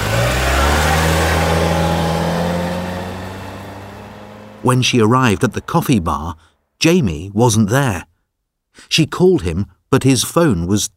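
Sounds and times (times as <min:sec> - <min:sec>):
car driving away fast: 0:00.0 - 0:06.1
speech: 0:04.6 - 0:08.1, 0:08.8 - 0:10.9.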